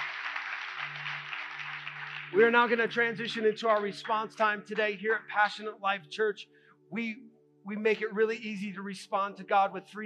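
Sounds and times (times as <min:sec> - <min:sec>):
audience applause: 0:00.0 - 0:04.2
speech: 0:02.3 - 0:10.0.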